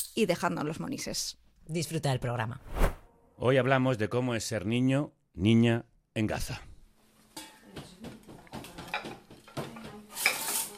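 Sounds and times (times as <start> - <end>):
speech: 0.2 - 2.8, 3.4 - 6.7
pots and utensils clinking in a Gaza family kitchen: 7.3 - 10.7.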